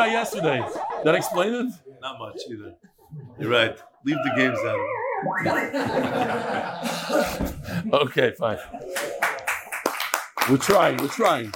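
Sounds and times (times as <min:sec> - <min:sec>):
laughter: 0:00.0 - 0:01.8, 0:03.4 - 0:09.6
speech: 0:00.0 - 0:09.4, 0:10.4 - 0:11.5
hand clapping: 0:08.9 - 0:11.5.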